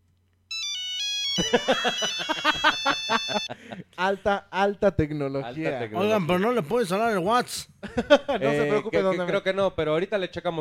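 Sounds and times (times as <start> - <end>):
mobile phone ringtone: 0.5 - 3.5
laughter: 1.4 - 4.0, 7.8 - 9.5
speech: 1.4 - 10.5.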